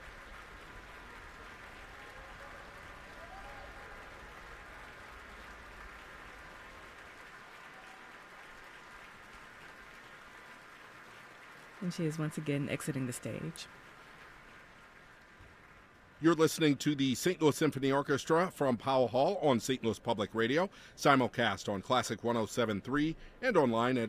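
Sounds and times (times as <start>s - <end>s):
large concert hall audience applause: 0.0s - 17.4s
speech: 11.8s - 13.9s, 16.2s - 24.0s.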